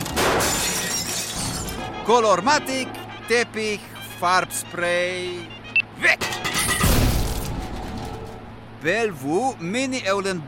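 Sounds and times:
glass carafe shattering: 0.1s - 1.8s
speech: 2.1s - 6.6s, 8.8s - 10.4s.

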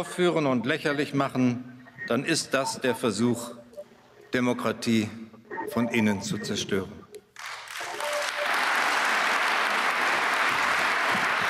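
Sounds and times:
speech: 0.0s - 3.6s, 4.3s - 7.0s
audience applause for a political speech at the Dresden Kulturpalast: 7.4s - 11.4s.

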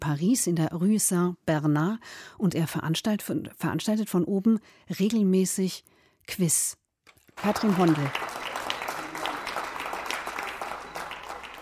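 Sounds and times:
speech: 0.0s - 6.8s, 7.4s - 8.5s
balcony applause for hospital care staff on Rue Saint-Bernard in Paris: 7.3s - 11.6s.

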